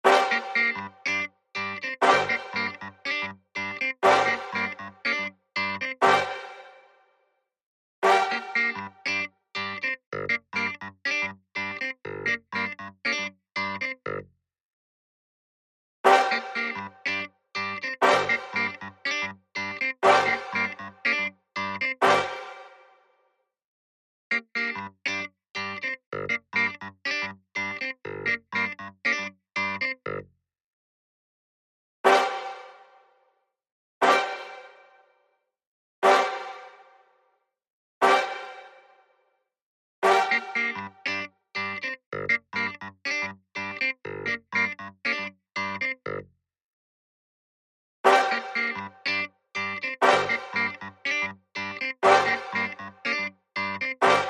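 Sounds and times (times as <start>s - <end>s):
keyboard: 0.0s - 6.9s, 8.0s - 14.2s, 16.1s - 22.9s, 24.3s - 30.2s, 40.0s - 46.2s, 48.1s - 54.2s
brass: 0.0s - 7.0s, 8.0s - 9.2s, 16.0s - 22.9s, 32.0s - 33.0s, 34.0s - 35.0s, 36.0s - 37.0s, 38.0s - 39.0s, 40.0s - 41.3s, 48.0s - 51.2s, 51.9s - 53.3s, 53.9s - 54.2s.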